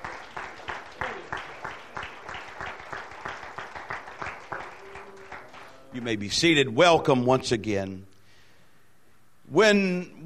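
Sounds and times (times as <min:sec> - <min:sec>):
audience clapping: 0:00.0 - 0:06.2
speech: 0:06.0 - 0:08.1, 0:09.5 - 0:10.2.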